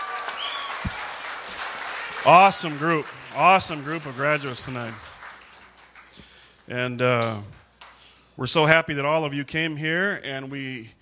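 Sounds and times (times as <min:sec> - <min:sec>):
audience applause for graduates: 0:00.0 - 0:06.7
speech: 0:02.2 - 0:05.1, 0:06.7 - 0:07.6, 0:08.4 - 0:11.0.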